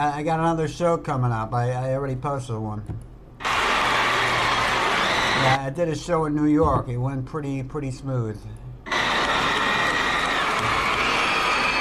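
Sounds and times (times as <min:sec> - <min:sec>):
speech: 0:00.0 - 0:03.1, 0:05.4 - 0:08.7
applause: 0:03.4 - 0:05.6, 0:08.9 - 0:11.7
cheering: 0:03.4 - 0:05.6, 0:08.9 - 0:11.7.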